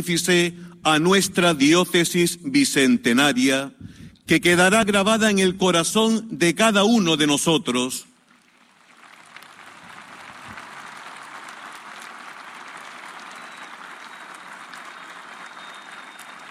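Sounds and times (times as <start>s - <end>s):
speech: 0.0s - 8.1s
applause for the bishop: 8.3s - 16.4s.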